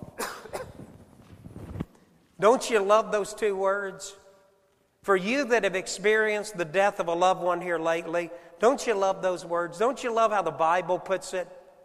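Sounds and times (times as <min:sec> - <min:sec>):
cough: 0:00.0 - 0:00.9
speech: 0:02.4 - 0:04.2, 0:05.0 - 0:11.6.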